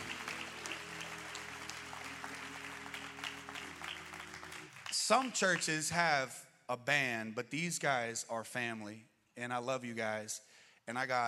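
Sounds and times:
applause: 0.0 - 6.1
speech: 5.1 - 11.2.

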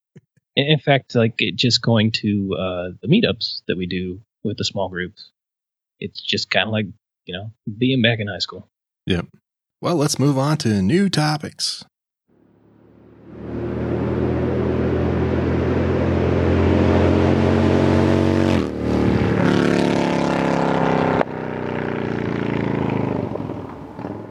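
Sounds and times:
speech: 0.6 - 5.4, 6.0 - 11.9
motor vehicle engine drone: 12.4 - 24.2.

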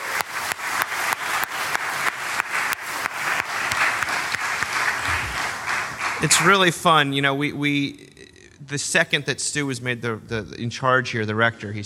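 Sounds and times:
audience applause: 0.0 - 7.1
speech: 6.2 - 11.8.

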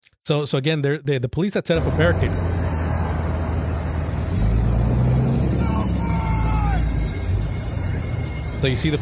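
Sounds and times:
speech: 0.3 - 2.7, 8.6 - 9.0
trucks and tractors driving past: 1.8 - 9.0
whining engine tones: 1.8 - 9.0.

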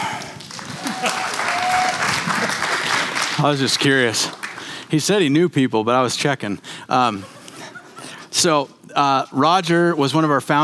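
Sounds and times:
audience clapping: 0.0 - 5.0
speech: 3.4 - 7.4, 8.4 - 10.6.

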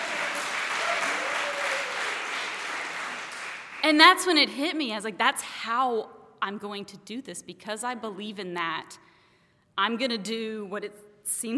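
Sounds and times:
audience applause: 0.0 - 3.8
speech: 3.8 - 9.1, 9.8 - 11.5.

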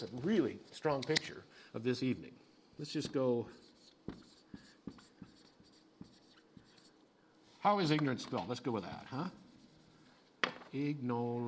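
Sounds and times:
speech: 0.0 - 4.2, 7.6 - 9.4, 10.7 - 11.4
faint hum: 0.0 - 11.4
writing down words: 3.0 - 7.0, 8.7 - 10.2.

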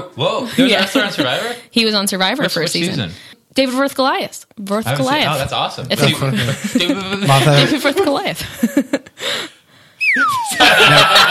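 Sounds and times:
speech: 0.2 - 11.2
laughter: 4.6 - 6.3
slide whistle: 10.0 - 11.1.

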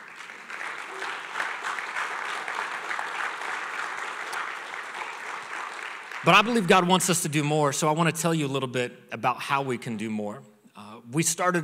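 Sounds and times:
church audience applauding: 0.0 - 7.2
speech: 6.2 - 10.5, 11.1 - 11.6.

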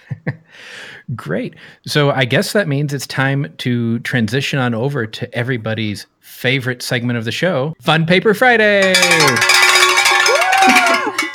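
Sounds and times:
speech: 0.2 - 9.6
cowbells ringing: 8.8 - 11.3.

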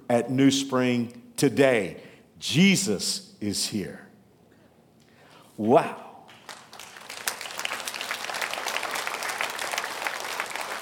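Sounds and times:
speech: 0.1 - 4.0, 5.6 - 6.0
scattered audience applause: 6.4 - 10.7.

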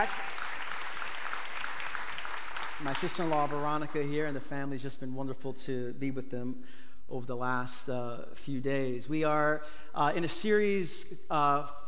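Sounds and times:
church congregation applauding to welcome back a former worship leader: 0.0 - 4.1
speech: 2.8 - 11.8.

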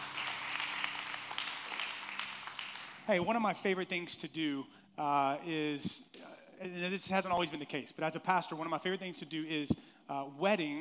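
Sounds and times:
audience clapping hands: 0.0 - 3.5
speech: 3.1 - 10.7.

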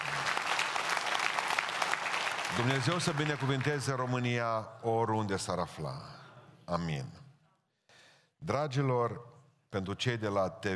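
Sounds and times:
audience applause in a hall: 0.0 - 4.3
speech: 2.5 - 7.2, 8.4 - 10.7.

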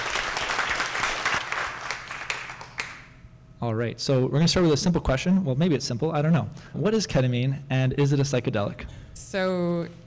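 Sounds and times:
audience applause: 0.0 - 3.0
speech: 3.6 - 10.0.

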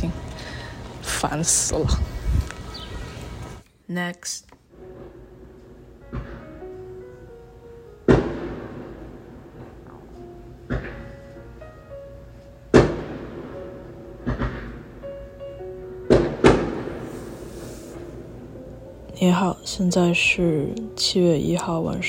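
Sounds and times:
speech: 1.2 - 2.2, 3.9 - 4.5, 19.2 - 22.0
fireworks outside the window: 6.1 - 6.5, 8.1 - 11.1, 12.7 - 14.9, 16.1 - 18.1.

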